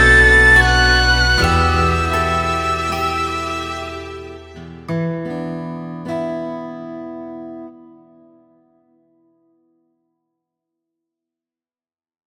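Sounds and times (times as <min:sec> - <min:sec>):
background music: 0:00.0 - 0:05.0.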